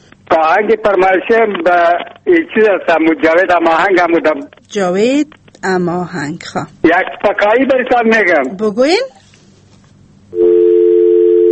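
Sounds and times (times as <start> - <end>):
speech: 0.4 - 9.2
telephone line tone after a call is cut off: 10.3 - 11.5.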